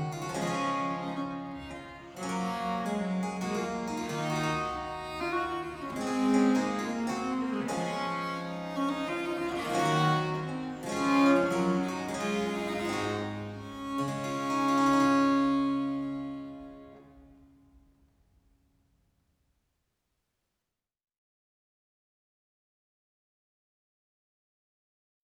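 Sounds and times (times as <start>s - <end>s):
minuet: 0.0s - 17.3s.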